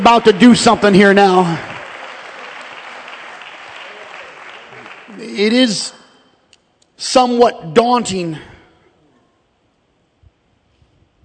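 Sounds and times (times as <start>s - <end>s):
speech: 0.0s - 1.7s, 5.4s - 6.0s, 7.0s - 8.5s
audience clapping: 0.0s - 6.2s.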